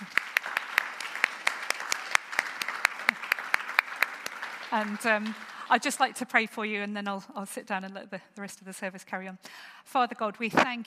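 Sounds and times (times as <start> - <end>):
audience clapping: 0.0 - 6.4
speech: 4.7 - 10.8.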